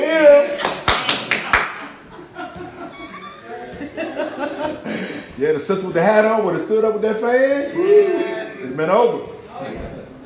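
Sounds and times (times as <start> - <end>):
audience clapping: 0.6 - 2.0
laughter: 1.7 - 5.3
speech: 4.8 - 9.9.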